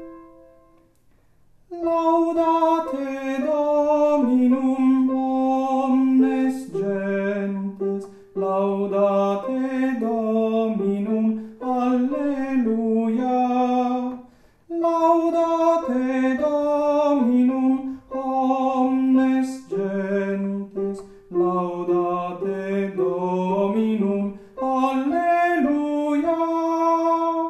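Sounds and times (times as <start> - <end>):
tenor voices singing: 1.7 - 27.4.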